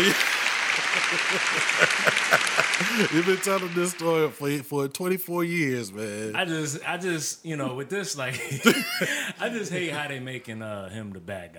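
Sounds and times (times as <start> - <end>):
speech: 0.0 - 0.3, 1.0 - 11.5
laughter: 0.0 - 4.1, 8.3 - 10.0
audience applause: 0.0 - 4.6.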